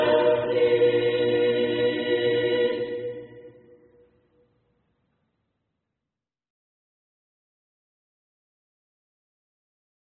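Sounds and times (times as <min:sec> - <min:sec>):
Christmas carol: 0:00.0 - 0:04.0.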